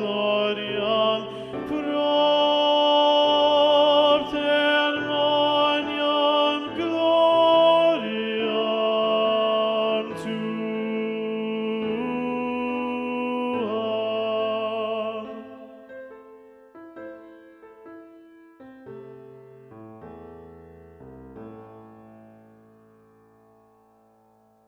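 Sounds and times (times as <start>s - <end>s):
tenor singing a Gloria: 0.0s - 16.2s.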